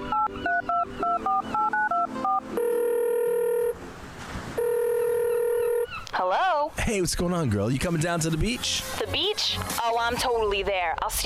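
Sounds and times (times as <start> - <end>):
phone touch-tone dialing beeps: 0.1 - 3.8, 4.6 - 5.9
speech: 6.9 - 11.2.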